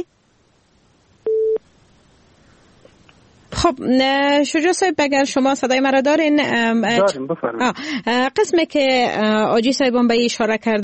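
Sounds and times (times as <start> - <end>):
telephone busy signal beep: 1.2 - 1.6
speech: 3.6 - 10.8.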